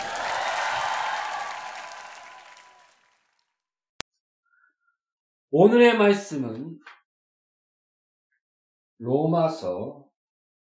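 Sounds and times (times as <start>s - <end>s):
audience applause: 0.0s - 3.4s
speech: 5.5s - 7.0s, 9.0s - 10.0s.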